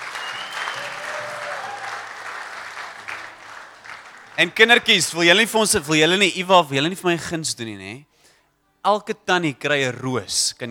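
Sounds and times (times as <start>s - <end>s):
audience applause at a community gathering: 0.0s - 5.5s
speech: 4.4s - 8.1s, 8.8s - 10.6s.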